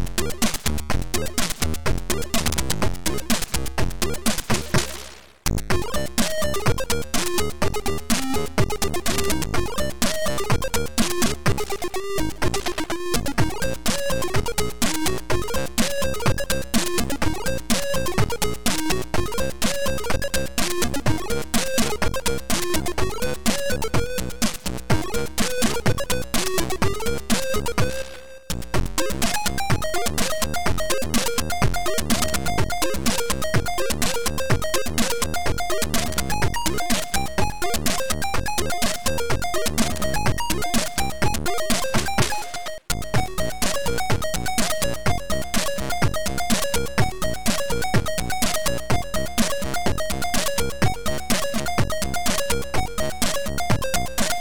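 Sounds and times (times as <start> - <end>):
gameplay music: 0.2 - 54.3.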